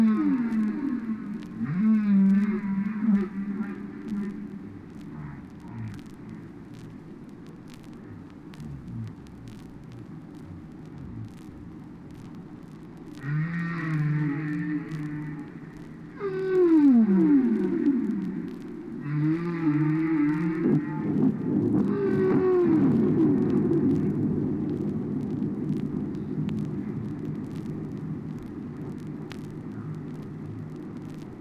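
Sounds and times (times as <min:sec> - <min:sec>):
whale moaning: 0:00.0 - 0:06.5, 0:11.0 - 0:11.7, 0:13.2 - 0:24.9
underwater noise: 0:00.0 - 0:31.4.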